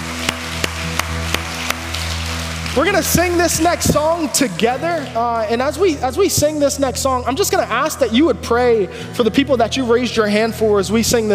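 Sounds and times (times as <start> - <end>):
audience applause: 0.0 - 4.2
speech: 2.8 - 11.3.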